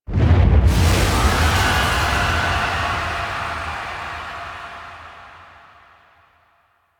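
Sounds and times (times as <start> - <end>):
explosion: 0.1 - 6.4.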